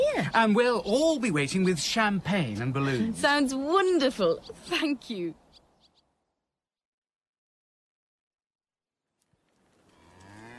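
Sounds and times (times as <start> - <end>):
speech: 0.2 - 5.4
cow mooing: 9.9 - 10.5.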